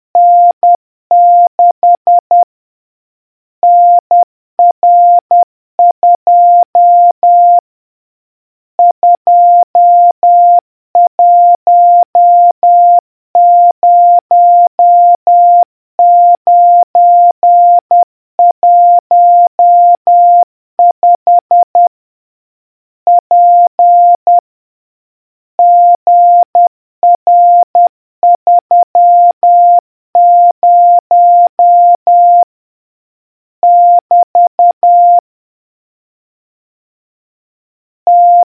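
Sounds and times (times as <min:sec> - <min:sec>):
morse code beeps: 0:00.2 - 0:02.4, 0:03.6 - 0:07.6, 0:08.8 - 0:21.9, 0:23.1 - 0:24.4, 0:25.6 - 0:32.5, 0:33.6 - 0:35.2, 0:38.1 - 0:38.5.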